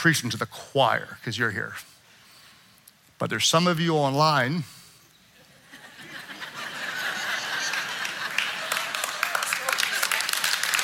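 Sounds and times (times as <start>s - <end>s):
speech: 0.0s - 1.9s, 3.2s - 4.8s
laughter: 5.4s - 10.8s
audience clapping: 7.0s - 10.8s.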